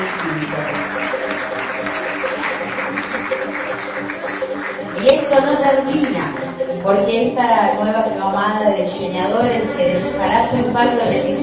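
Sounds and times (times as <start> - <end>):
crowd applause: 0.0 - 6.8
speech: 5.0 - 11.4.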